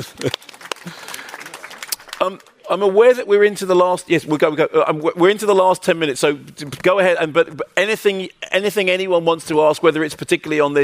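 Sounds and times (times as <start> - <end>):
speech: 0.0 - 1.0, 2.2 - 10.8
audience applause: 0.0 - 2.7.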